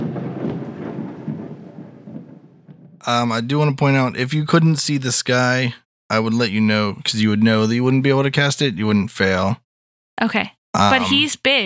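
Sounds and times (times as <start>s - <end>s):
thunder rumbling as a sound effect for the Call Lightning spell: 0.0s - 5.4s
speech: 3.0s - 9.6s, 10.2s - 11.6s.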